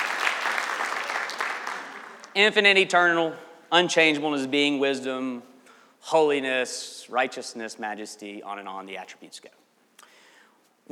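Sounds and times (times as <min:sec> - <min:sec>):
crowd applause: 0:00.0 - 0:02.4
speech: 0:02.4 - 0:09.6.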